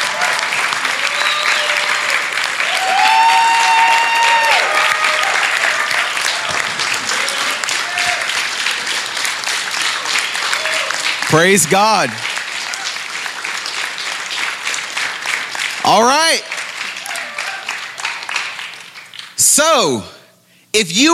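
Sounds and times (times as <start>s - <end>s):
whistles and cheers: 0.0s - 8.4s
audience applause: 0.0s - 19.4s
speech: 11.3s - 12.2s, 15.9s - 16.5s, 19.7s - 20.1s, 20.7s - 21.1s.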